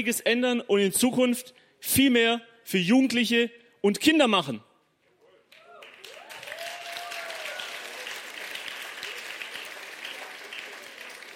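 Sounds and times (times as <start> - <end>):
speech: 0.0 - 4.7
audience applause: 5.6 - 11.3.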